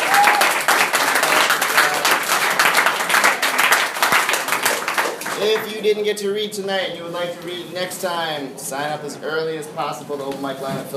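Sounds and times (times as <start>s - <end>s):
audience applause for poetry readers: 0.0s - 5.7s
speech: 5.6s - 10.9s.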